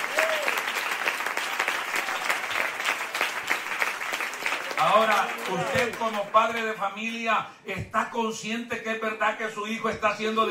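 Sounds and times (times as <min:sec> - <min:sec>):
audience applause: 0:00.0 - 0:06.8
speech: 0:04.8 - 0:10.4.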